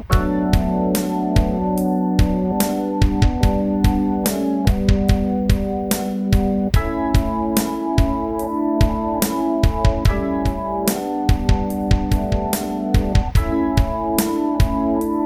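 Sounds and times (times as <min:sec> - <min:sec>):
ambient organ: 0:00.0 - 0:15.2.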